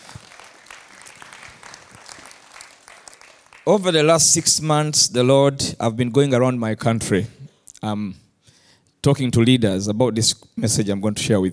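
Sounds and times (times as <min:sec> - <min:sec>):
audience clapping: 0:00.0 - 0:04.4
speech: 0:03.7 - 0:08.2, 0:09.0 - 0:11.5.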